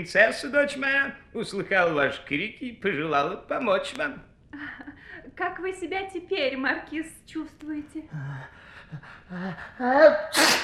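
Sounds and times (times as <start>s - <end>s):
speech: 0.0s - 10.6s
marquis sneezing: 10.1s - 10.6s.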